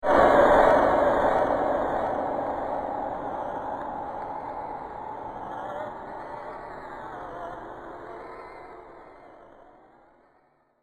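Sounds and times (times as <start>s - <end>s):
haunted impact: 0.0s - 6.6s
horror winds: 0.0s - 10.6s.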